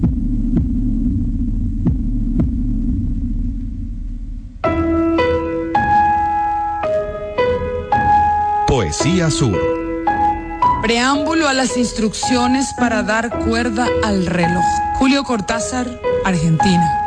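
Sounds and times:
low droning hum: 0.0 - 4.7
slow, deep heartbeat thumps: 0.0 - 15.1
speech: 9.0 - 9.8, 10.8 - 17.0.

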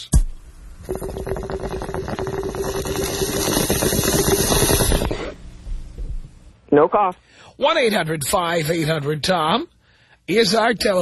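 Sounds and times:
bong hit bubbling: 0.0 - 6.4
speech: 0.8 - 1.4, 6.8 - 11.0
person inhaling: 2.2 - 5.4, 7.2 - 7.6, 9.8 - 10.3.

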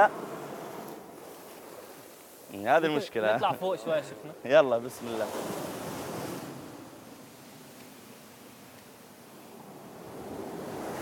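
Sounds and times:
speech: 0.0 - 0.2, 2.5 - 5.6
sea waves washing onto the shore: 0.0 - 11.0.

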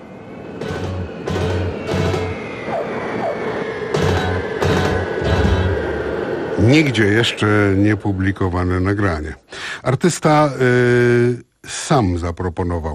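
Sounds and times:
hissing bursts: 0.0 - 8.6
supersonic plane landing sound effect: 0.0 - 9.6
speech: 6.6 - 12.9.

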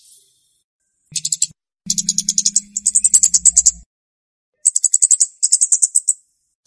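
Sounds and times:
flowerpecker ticking calls: 1.2 - 3.8.

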